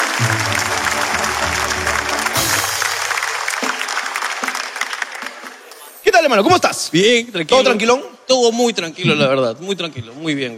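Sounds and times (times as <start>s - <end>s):
strong audience applause: 0.0s - 5.9s
speech: 6.2s - 10.5s.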